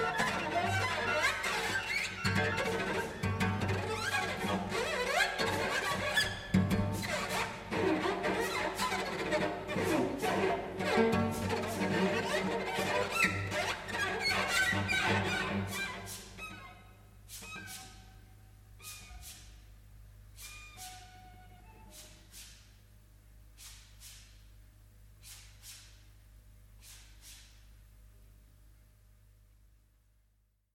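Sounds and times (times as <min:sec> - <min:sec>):
solo cello: 0:00.0 - 0:19.6, 0:20.4 - 0:22.3.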